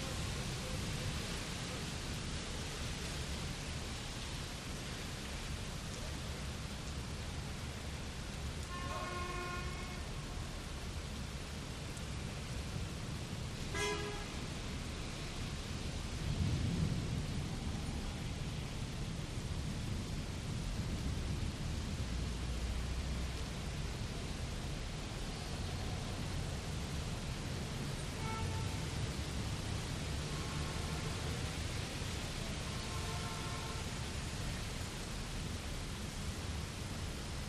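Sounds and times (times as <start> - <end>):
heavy rain in a city storm: 0.0 - 37.4
wet city traffic: 0.0 - 37.4
thunder: 16.2 - 18.5.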